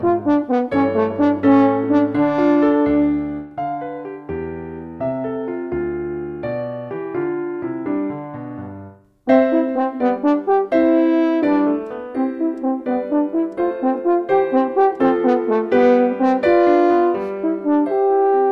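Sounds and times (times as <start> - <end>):
French horn solo: 0.0 - 3.4, 9.3 - 18.4
piano accompaniment: 0.0 - 18.4.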